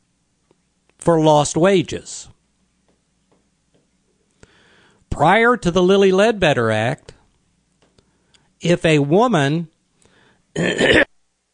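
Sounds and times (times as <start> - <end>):
speech: 1.0 - 2.4, 5.2 - 7.1, 8.6 - 9.7, 10.6 - 11.1
person clearing throat: 10.6 - 11.2.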